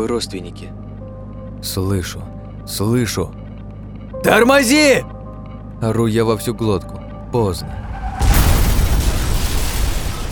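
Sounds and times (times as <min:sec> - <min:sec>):
speech: 0:00.0 - 0:00.8, 0:01.6 - 0:03.4, 0:04.2 - 0:05.1, 0:05.8 - 0:07.9
truck crashing at high speed into minibus: 0:07.8 - 0:10.3.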